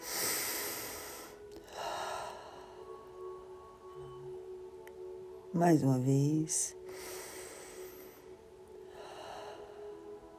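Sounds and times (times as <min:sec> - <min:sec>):
deep breath during a guided relaxation exercise: 0:00.0 - 0:03.0, 0:06.9 - 0:10.1
faint hum: 0:00.0 - 0:10.3
speech: 0:05.5 - 0:06.8.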